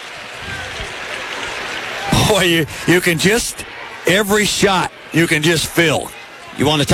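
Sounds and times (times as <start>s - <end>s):
arena crowd noise at wrestling match: 0.0s - 6.9s
speech: 2.3s - 6.9s.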